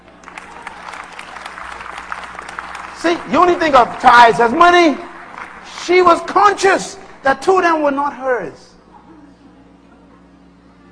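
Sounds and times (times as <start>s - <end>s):
audience clapping: 0.0s - 7.3s
speech: 3.0s - 5.1s, 5.8s - 8.7s.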